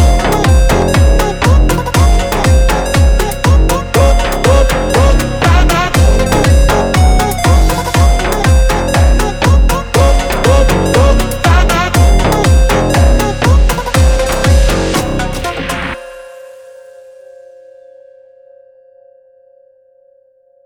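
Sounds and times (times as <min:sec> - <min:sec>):
Brazilian gym phonk music: 0:00.0 - 0:16.4.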